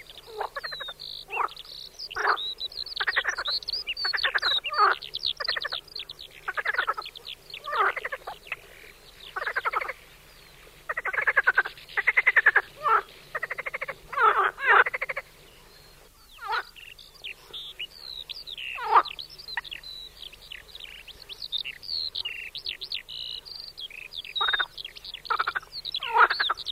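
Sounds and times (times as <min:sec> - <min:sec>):
marsh frog croaking in pulsed rattling bursts: 0:00.0 - 0:10.0, 0:10.9 - 0:15.3, 0:16.4 - 0:17.8, 0:18.6 - 0:19.8, 0:23.3 - 0:26.6.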